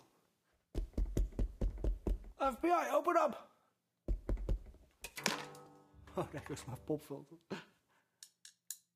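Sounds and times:
knocking on a door: 0.8 - 2.4, 4.1 - 4.8
speech: 2.4 - 3.5, 6.2 - 7.6.

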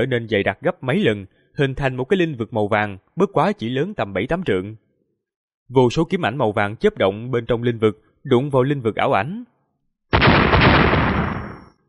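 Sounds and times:
speech: 0.0 - 4.8, 5.7 - 9.5
loud explosion sound effect: 10.1 - 11.8.

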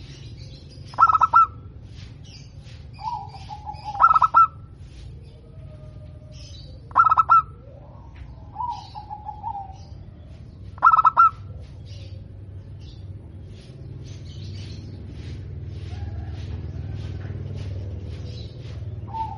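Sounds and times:
Zebra dove cooing: 0.9 - 1.8, 3.0 - 12.4, 19.0 - 19.3.

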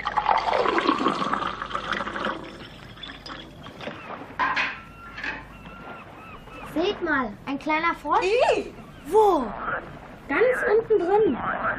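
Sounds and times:
water pouring into a container: 0.0 - 3.8
water sloshing and trickling: 0.0 - 11.4
speech: 7.2 - 9.6, 10.3 - 11.7.

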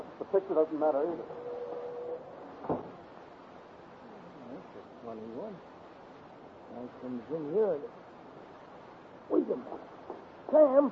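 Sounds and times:
steady hiss: 0.0 - 10.8
speech: 0.3 - 1.5, 5.1 - 5.8, 6.7 - 8.0, 9.5 - 9.9, 10.5 - 10.8
door banging shut: 2.6 - 3.0.

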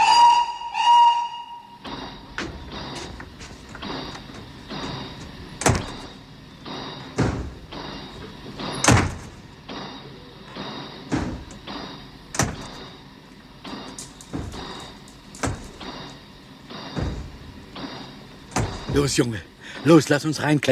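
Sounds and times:
shrill steady train departure whistle: 0.0 - 2.2
low rumbling station hum: 1.7 - 20.0
heavy train carriage doors banging shut: 1.9 - 19.4
speech: 19.0 - 20.7.

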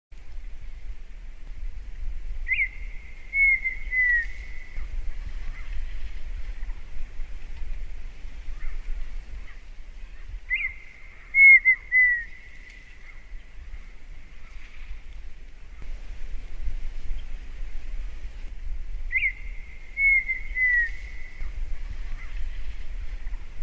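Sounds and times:
partridge whistling: 2.5 - 4.8, 10.5 - 13.2, 19.1 - 21.5.

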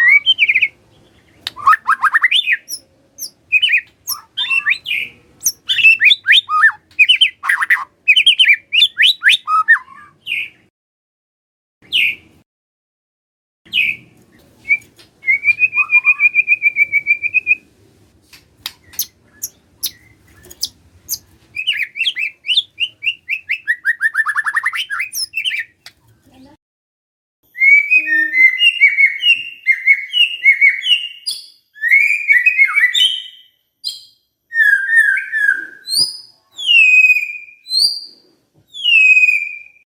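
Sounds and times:
White-rumped shama song: 0.0 - 10.7, 11.8 - 12.3, 13.7 - 17.7, 18.7 - 25.9, 27.5 - 39.9.

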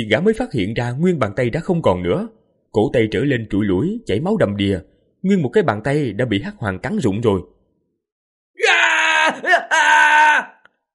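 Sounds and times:
speech: 0.0 - 7.6
man screaming in pain: 8.6 - 10.6.

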